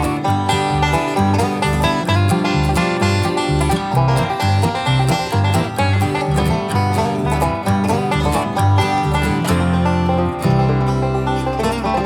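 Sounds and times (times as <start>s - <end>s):
banjo playing mountain blues: 0.0s - 12.0s.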